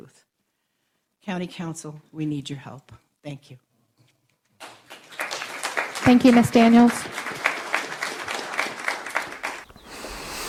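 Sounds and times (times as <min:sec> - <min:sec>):
speech: 0:01.2 - 0:03.7, 0:06.1 - 0:07.3
crowd applause: 0:04.6 - 0:09.7.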